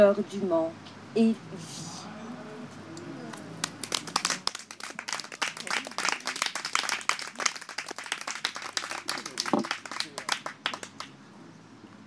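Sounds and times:
speech: 0:00.0 - 0:01.9
audience applause: 0:03.3 - 0:11.1.

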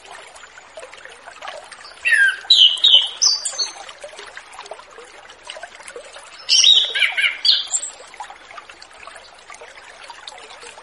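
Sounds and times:
orange-headed thrush whistled song: 0:02.0 - 0:03.8, 0:06.4 - 0:07.9.

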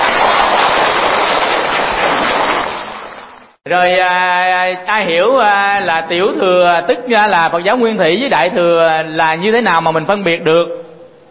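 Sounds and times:
audience applause: 0:00.0 - 0:03.1
speech: 0:03.7 - 0:10.8.

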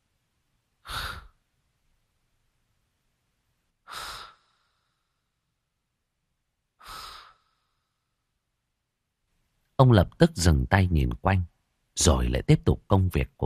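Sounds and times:
soft heavy wheezing breathing in a dark damp garage: 0:00.8 - 0:01.4, 0:03.8 - 0:05.4, 0:06.8 - 0:08.2
speech: 0:09.8 - 0:13.4.

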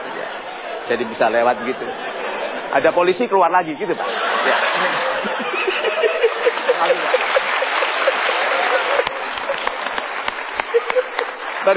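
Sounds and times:
laughter: 0:00.0 - 0:03.0, 0:03.8 - 0:11.7
speech: 0:00.9 - 0:06.1, 0:06.8 - 0:07.6, 0:10.9 - 0:11.7
studio audience applauding a guest on a television talk show: 0:04.4 - 0:11.7.

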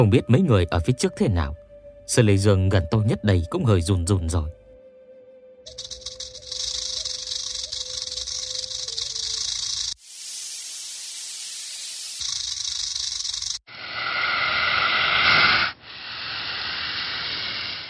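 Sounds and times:
speech: 0:00.0 - 0:04.6, 0:05.6 - 0:05.9
swarm of black snakes hissing: 0:05.7 - 0:17.8.

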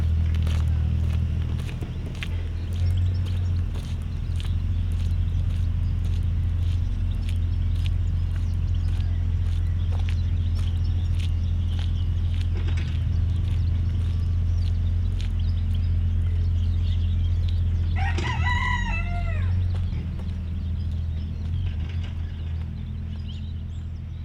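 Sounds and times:
low engine hum: 0:00.0 - 0:24.2
rooster crowing: 0:17.9 - 0:20.0.

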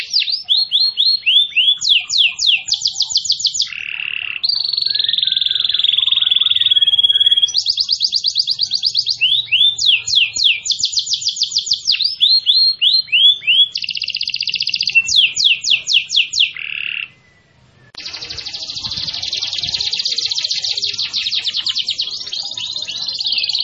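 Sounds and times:
canary song in energetic nonstop style: 0:00.0 - 0:23.6.

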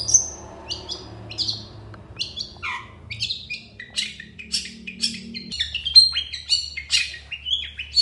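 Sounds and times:
long-tailed shrike song in the morning: 0:00.7 - 0:07.9.

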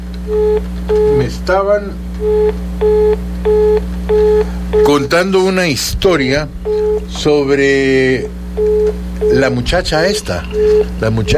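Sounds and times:
constant low hum: 0:00.0 - 0:11.3
telephone busy signal after a dropped call: 0:00.3 - 0:01.2, 0:02.2 - 0:05.0, 0:06.6 - 0:07.1, 0:08.6 - 0:09.5, 0:10.2 - 0:11.3
speech: 0:00.3 - 0:11.3.

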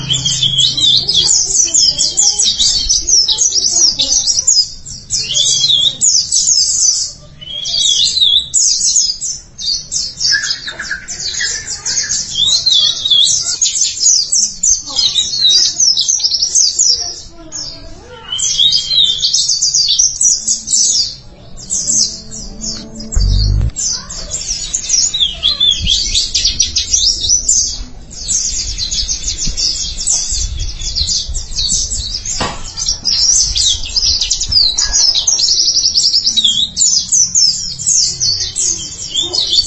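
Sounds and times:
white-eye twittering song: 0:00.0 - 0:39.6
faint low hum: 0:21.5 - 0:24.3
low thump: 0:22.8 - 0:23.8.

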